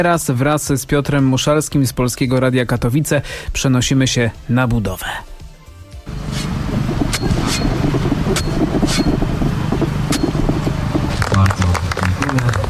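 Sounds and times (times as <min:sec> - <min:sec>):
speech: 0:00.0 - 0:05.3
steady rumbling noise: 0:06.1 - 0:12.6
shovel digging into ground: 0:06.2 - 0:09.2, 0:10.1 - 0:10.4.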